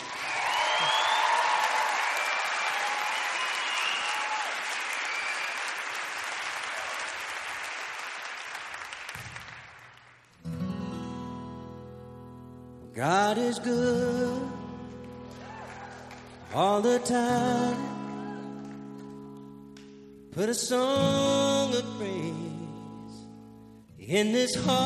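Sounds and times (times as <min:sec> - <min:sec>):
crowd applause welcoming a guest onto the stage at a concert: 0:00.0 - 0:10.4, 0:15.1 - 0:19.1
concert music: 0:10.4 - 0:24.8
speech: 0:13.0 - 0:14.5, 0:16.6 - 0:18.0, 0:20.4 - 0:22.4, 0:24.1 - 0:24.8.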